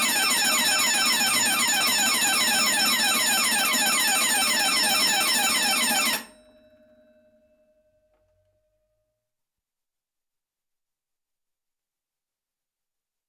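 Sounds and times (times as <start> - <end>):
combined bell and electronic burglar alarm: 0.0 - 7.7.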